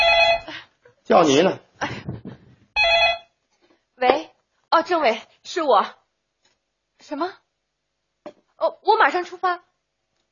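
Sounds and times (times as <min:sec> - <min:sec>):
telephone ringing: 0:00.0 - 0:00.5, 0:02.8 - 0:03.4
speech: 0:01.1 - 0:02.0, 0:04.8 - 0:06.0, 0:07.0 - 0:07.4, 0:08.2 - 0:09.7.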